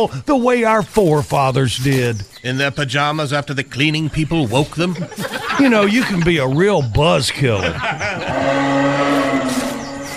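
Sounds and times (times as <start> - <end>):
speech: 0.0 - 8.6
laughter: 4.6 - 8.6
buck deer bellowing: 8.0 - 10.1.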